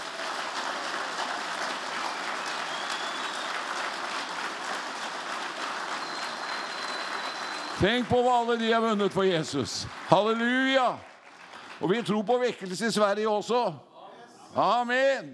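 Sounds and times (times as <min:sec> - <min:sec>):
sustained audience applause: 0:00.0 - 0:12.6
speech: 0:07.8 - 0:11.1, 0:11.8 - 0:13.9, 0:14.5 - 0:15.3.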